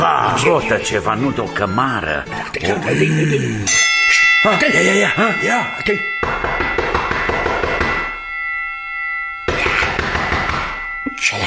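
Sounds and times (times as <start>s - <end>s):
speech: 0.3s - 6.5s
doorbell ringing: 3.7s - 11.4s.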